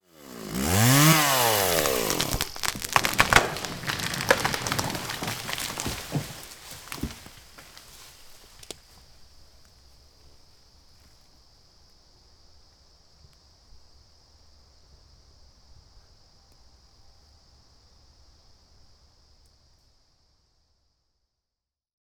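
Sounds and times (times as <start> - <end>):
tree falling in the forest: 0.4 - 9.0.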